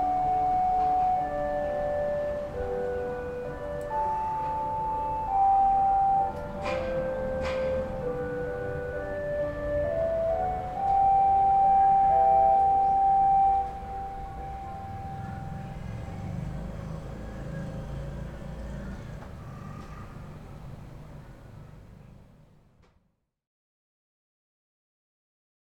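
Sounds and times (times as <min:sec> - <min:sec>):
noon public time signal chime in Kamisuwa: 0:00.0 - 0:16.7.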